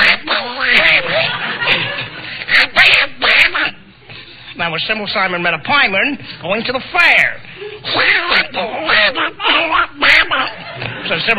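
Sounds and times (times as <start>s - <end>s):
man doing quacking cartoon duck voice impression: 0.0s - 1.3s, 2.4s - 3.8s, 6.9s - 10.6s
laughter: 0.9s - 2.4s, 9.0s - 11.3s
speech: 4.8s - 11.3s.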